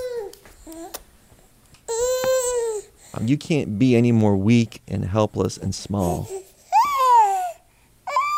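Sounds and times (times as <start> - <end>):
newborn baby babbling and crying: 0.0 - 1.0, 1.9 - 3.0, 6.0 - 8.3
speech: 3.2 - 6.4.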